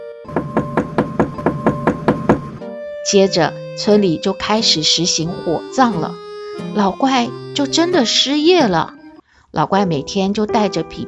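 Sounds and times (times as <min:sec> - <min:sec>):
knocking on a door: 0:00.3 - 0:02.6
speech: 0:03.1 - 0:06.2, 0:06.8 - 0:11.0.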